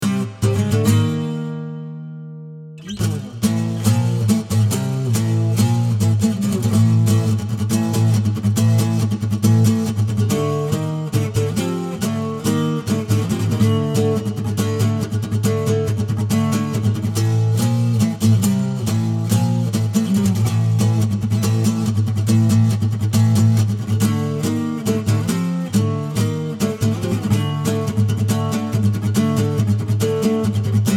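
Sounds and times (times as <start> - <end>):
acoustic music: 0.0 - 30.9.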